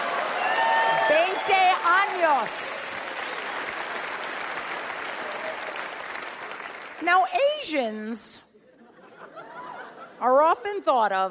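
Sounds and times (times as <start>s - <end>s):
audience applause: 0.0s - 7.0s
speech: 2.2s - 3.0s, 7.0s - 8.5s, 10.2s - 11.2s
laughter: 8.6s - 10.4s.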